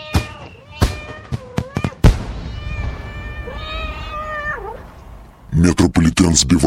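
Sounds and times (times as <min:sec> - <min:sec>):
kitten meows: 0:00.0 - 0:05.0
firework bangs: 0:00.0 - 0:05.5
speech: 0:05.6 - 0:06.6.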